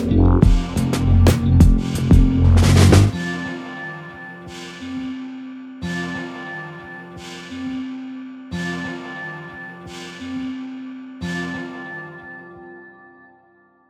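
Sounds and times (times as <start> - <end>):
jazz hop music: 0.0 - 3.9.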